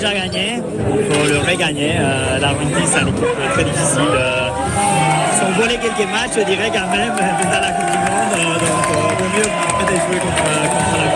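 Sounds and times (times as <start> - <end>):
speech: 0.0 - 11.1
crowd singing celebrating victory: 2.5 - 6.6
crowd shouting celebrating victory: 4.1 - 11.1.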